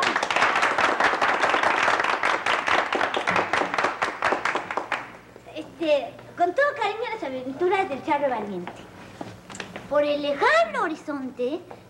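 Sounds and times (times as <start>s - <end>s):
applause: 0.0s - 5.2s
speech: 5.9s - 8.9s, 9.9s - 11.8s.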